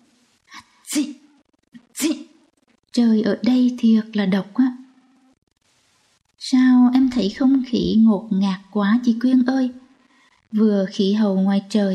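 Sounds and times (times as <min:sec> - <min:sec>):
repeated sneezing: 0:00.5 - 0:02.3
speech: 0:00.9 - 0:01.2, 0:03.0 - 0:04.8, 0:07.2 - 0:09.8, 0:10.5 - 0:11.9.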